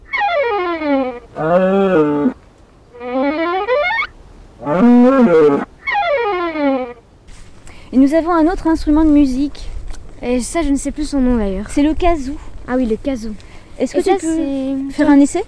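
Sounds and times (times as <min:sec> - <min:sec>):
cows bellowing: 0:00.0 - 0:02.4, 0:03.0 - 0:07.0
speech: 0:08.2 - 0:15.4.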